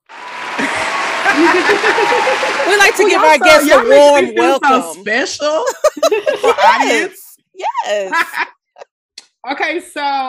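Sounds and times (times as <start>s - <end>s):
small crowd applause: 0.0s - 3.5s
laughter: 0.6s - 4.8s, 5.7s - 7.3s, 8.0s - 8.6s
speech: 1.4s - 8.6s, 9.4s - 10.2s.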